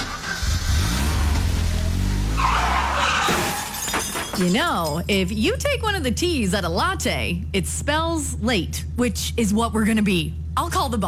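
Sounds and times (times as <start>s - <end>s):
car tires skidding in an accident: 0.0s - 4.0s
speech: 4.4s - 11.0s.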